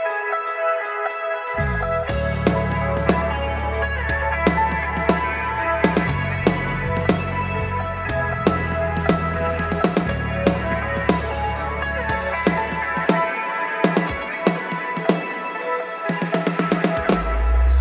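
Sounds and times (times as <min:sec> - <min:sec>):
drum kit: 0:00.1 - 0:17.7.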